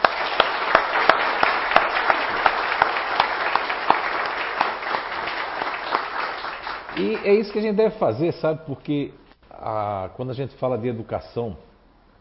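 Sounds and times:
audience applause: 0.0s - 7.7s
speech: 7.0s - 11.7s.

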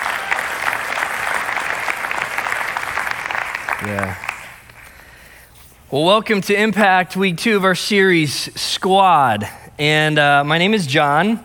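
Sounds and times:
crowd applauding the band at a morning gathering: 0.0s - 4.8s
speech: 3.8s - 4.3s, 5.9s - 11.4s.

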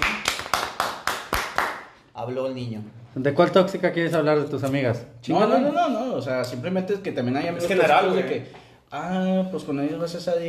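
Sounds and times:
crisp hand claps: 0.0s - 2.1s
speech: 2.2s - 10.4s.

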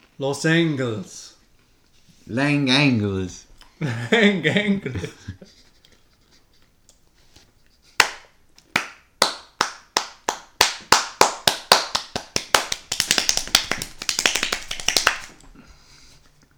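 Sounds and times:
speech: 0.2s - 1.3s, 2.3s - 5.6s
fast hand clapping: 8.0s - 15.3s.

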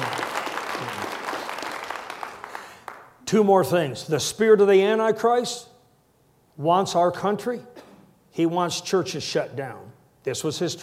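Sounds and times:
crowd applauding: 0.0s - 3.2s
speech: 3.3s - 5.7s, 6.6s - 7.8s, 8.4s - 10.8s.

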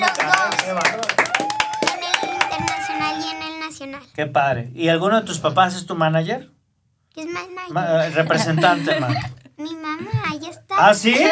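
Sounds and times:
applause: 0.0s - 3.4s
voices calling out and cheering: 0.0s - 3.8s
speech: 4.2s - 6.6s, 7.2s - 11.3s
laughter: 8.0s - 9.5s.

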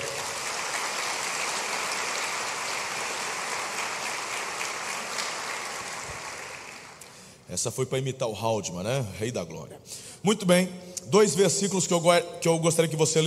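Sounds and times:
audience applause: 0.0s - 7.1s
speech: 7.5s - 13.2s.

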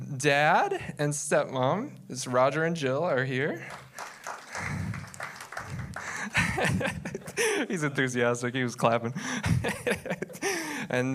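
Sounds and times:
speech: 0.2s - 4.1s, 6.6s - 11.1s
audience finger snapping: 3.6s - 7.2s
laughter: 4.4s - 8.1s, 9.2s - 11.1s.

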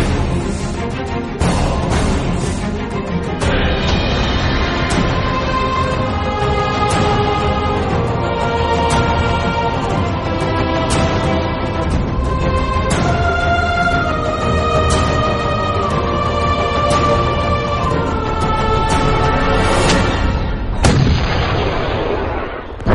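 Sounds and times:
sustained droning musical bed: 0.0s - 22.6s
artillery cannons firing: 20.7s - 22.9s.

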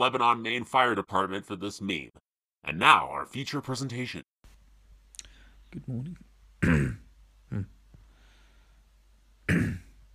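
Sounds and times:
speech: 0.0s - 4.3s, 5.7s - 7.8s, 9.5s - 9.8s
person coughing: 6.6s - 7.7s, 9.5s - 10.0s
throat clearing: 6.6s - 7.8s, 9.5s - 10.0s.

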